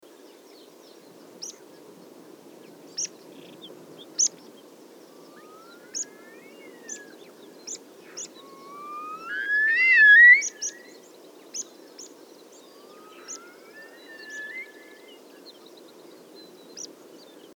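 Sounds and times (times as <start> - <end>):
pip blakistoni call: 8.4 - 10.7.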